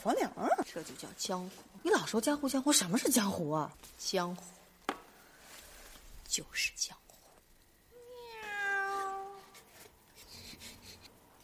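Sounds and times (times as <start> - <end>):
speech: 0.0 - 4.6, 6.3 - 7.0
cat meowing: 8.0 - 9.5.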